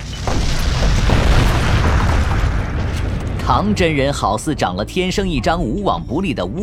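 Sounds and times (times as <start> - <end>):
loud crash of a building collapsing: 0.0 - 4.8
speech: 3.5 - 6.6.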